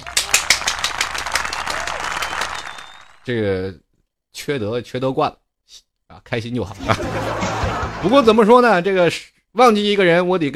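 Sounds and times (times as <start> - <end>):
applause: 0.0 - 3.3
speech: 3.2 - 3.8, 4.4 - 10.5
laughter: 6.8 - 8.5.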